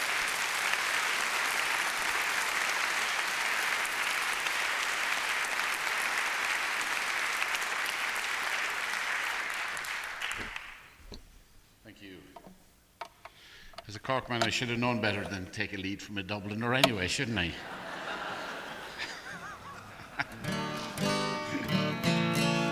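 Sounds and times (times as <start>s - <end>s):
audience applause in auditorium: 0.0s - 11.0s, 16.5s - 22.6s
laughter: 13.9s - 22.6s
speech: 14.1s - 17.8s.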